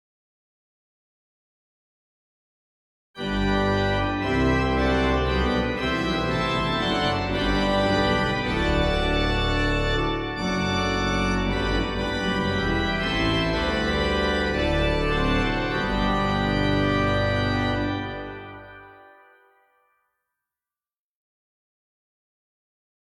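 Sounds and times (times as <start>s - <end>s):
musical accompaniment: 3.2s - 19.9s.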